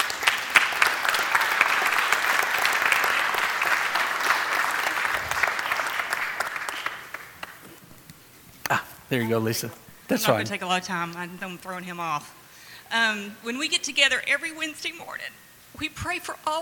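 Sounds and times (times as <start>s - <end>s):
audience applause: 0.0s - 7.8s
speech: 9.1s - 16.6s.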